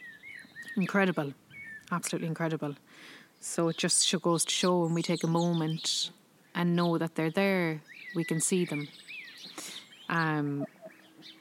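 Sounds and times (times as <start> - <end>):
faint birds chirping: 0.0 - 11.3
speech: 0.8 - 9.0, 10.1 - 11.3
duck giving a loud drawn-out nasal quack outdoors: 10.5 - 11.1.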